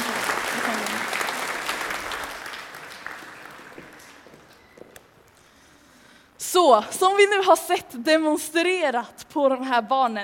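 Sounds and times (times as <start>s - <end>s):
audience applause: 0.0s - 4.5s
speech: 6.6s - 10.2s.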